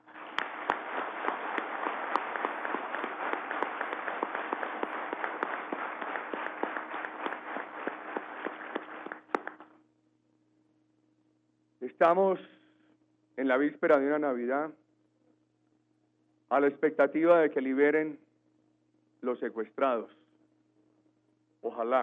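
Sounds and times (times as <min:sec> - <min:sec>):
crowd applause: 0:00.0 - 0:09.6
speech: 0:12.0 - 0:12.6, 0:13.4 - 0:14.8, 0:16.5 - 0:18.2, 0:19.2 - 0:20.2, 0:21.8 - 0:22.0.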